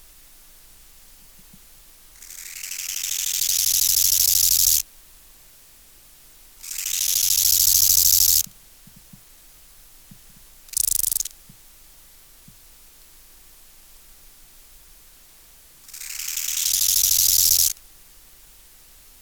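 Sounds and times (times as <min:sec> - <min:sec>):
bow-winged grasshopper stridulating: 0:02.2 - 0:04.8, 0:06.6 - 0:08.5, 0:10.7 - 0:11.4, 0:15.8 - 0:17.8.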